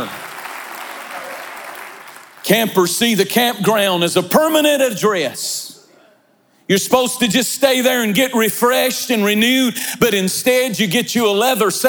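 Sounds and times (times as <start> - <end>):
audience clapping: 0.0 - 2.6
speech: 2.5 - 5.6, 6.7 - 11.8.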